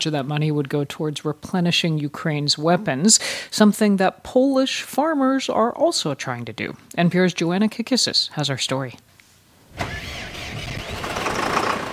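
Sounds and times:
speech: 0:00.0 - 0:09.1
heavy diesel tractor engine cranking and starting: 0:09.7 - 0:11.9.

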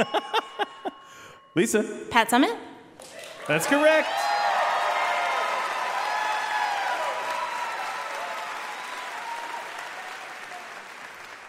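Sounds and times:
speech: 0:00.0 - 0:00.4, 0:01.6 - 0:02.7, 0:03.5 - 0:04.3
audience cheering and applause: 0:03.0 - 0:11.4.

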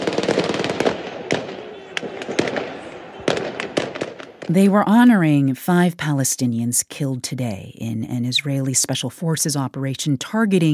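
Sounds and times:
guns fired into the air at a Palestinian funeral march: 0:00.0 - 0:04.5
speech: 0:04.5 - 0:10.7.

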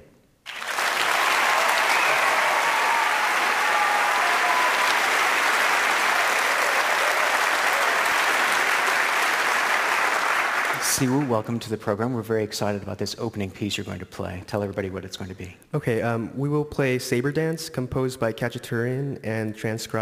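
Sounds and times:
audience applauding to welcome a 17-year-old violinist on stage: 0:00.5 - 0:11.4
speech: 0:11.0 - 0:20.0.

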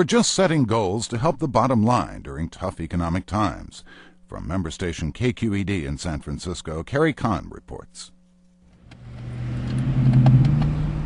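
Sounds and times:
speech: 0:00.0 - 0:08.2
car engine humming while circling San Francisco streets searching for parking: 0:08.7 - 0:11.0.

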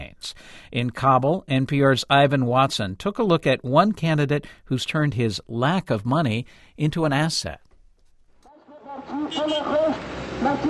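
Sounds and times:
speech: 0:00.2 - 0:07.7, 0:09.0 - 0:10.6
car driving past on a busy Kabul street: 0:08.6 - 0:10.6.

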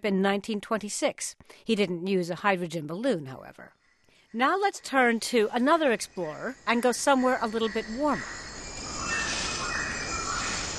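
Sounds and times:
speech: 0:00.0 - 0:08.5
insect hiss in Borneo jungle: 0:04.9 - 0:10.7
leaf monkey rustling in canopy: 0:04.9 - 0:10.7.

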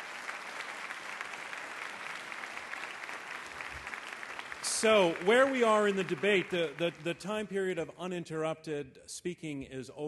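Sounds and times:
crowd clapping: 0:00.0 - 0:07.6
speech: 0:04.8 - 0:10.0.

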